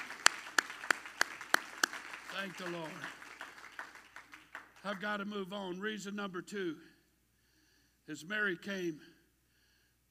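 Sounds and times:
audience clapping hands: 0:00.0 - 0:05.3
speech: 0:02.4 - 0:03.2, 0:04.8 - 0:06.9, 0:08.1 - 0:09.1.

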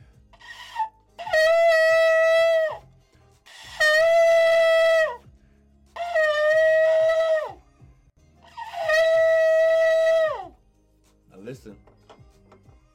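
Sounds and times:
shofar being blown: 0:00.4 - 0:02.9, 0:03.5 - 0:05.2, 0:06.0 - 0:07.6, 0:08.4 - 0:10.6.

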